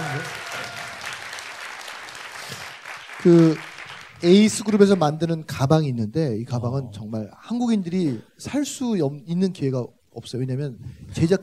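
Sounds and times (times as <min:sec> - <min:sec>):
audience clapping: 0:00.0 - 0:05.2
speech: 0:03.2 - 0:11.4.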